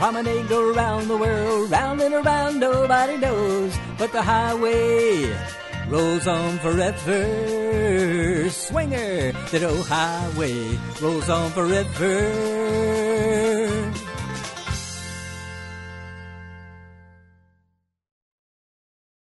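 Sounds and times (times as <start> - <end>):
person singing square dance music: 0.0 - 14.6.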